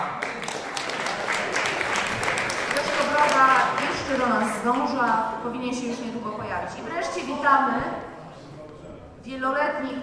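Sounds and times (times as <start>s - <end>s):
audience applause: 0.0s - 4.6s
speech: 4.3s - 8.1s, 9.2s - 10.0s.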